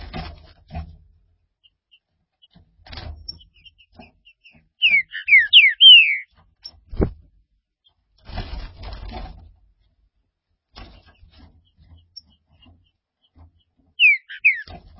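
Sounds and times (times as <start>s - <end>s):
green-winged saltator whistled song: 4.8s - 6.3s, 14.0s - 14.7s.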